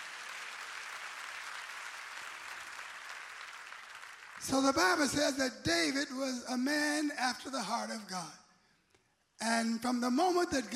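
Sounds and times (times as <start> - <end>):
audience clapping hands: 0.0 - 5.5
speech: 4.4 - 8.4, 9.4 - 10.7.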